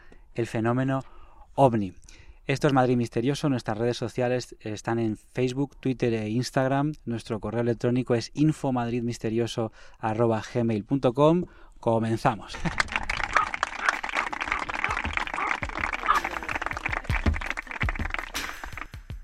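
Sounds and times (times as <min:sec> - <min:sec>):
speech: 0:00.4 - 0:12.9
audience applause: 0:12.6 - 0:18.9.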